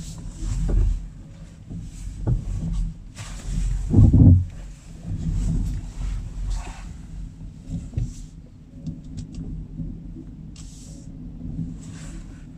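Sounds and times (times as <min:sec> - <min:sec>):
Kia Niro car: 0:00.0 - 0:12.5.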